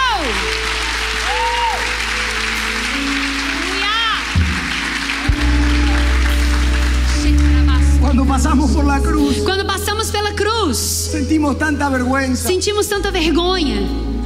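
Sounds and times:
audience applause: 0.0 - 8.5
speech: 8.7 - 14.1.

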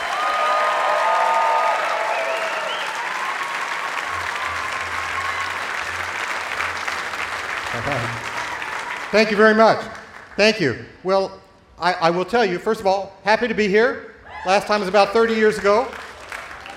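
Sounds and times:
audience whistles and cheers: 0.0 - 6.2, 8.2 - 9.5
audience applause at the Newport Folk Festival 2018 welcoming a performer: 0.0 - 10.4, 15.5 - 16.7
speech: 9.1 - 16.0.

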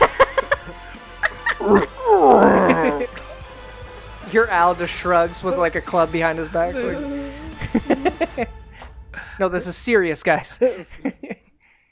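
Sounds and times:
laughter: 0.0 - 8.6, 10.4 - 11.5
person imitating a bear's roar: 1.5 - 3.4, 6.7 - 8.4
speech: 1.6 - 1.9, 4.4 - 7.2, 9.4 - 11.1.

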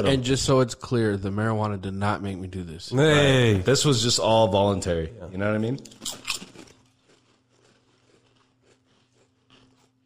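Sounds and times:
speech: 0.0 - 6.2
crunching on squid-flavored exotic snack chips: 5.9 - 10.0.

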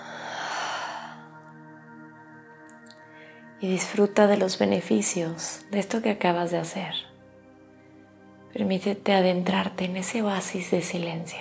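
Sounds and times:
deep breath exhaled through the mouth: 0.0 - 1.3
speech: 3.6 - 7.1, 8.5 - 11.3.

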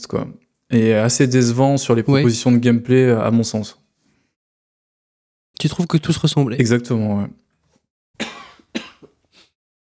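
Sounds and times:
speech: 0.0 - 3.8, 5.6 - 7.4
person choking coughing fit: 8.2 - 9.2.

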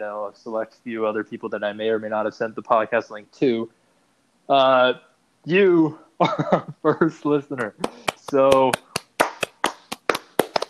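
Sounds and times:
speech: 0.0 - 3.8, 4.5 - 8.9
laughter: 6.2 - 8.7
hand clapping: 7.6 - 10.6.

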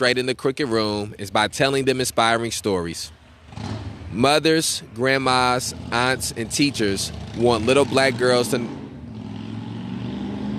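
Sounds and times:
speech: 0.0 - 8.8
motorcycle passing outside: 3.2 - 10.5.

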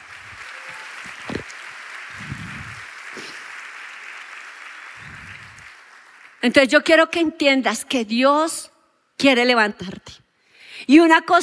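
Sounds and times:
audience applause: 0.0 - 6.4
speech: 6.4 - 10.2, 10.9 - 11.4.

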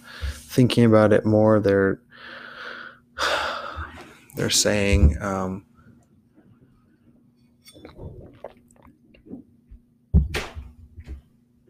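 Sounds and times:
speech: 0.5 - 2.4, 4.4 - 5.7
person drinking water: 7.6 - 9.6.

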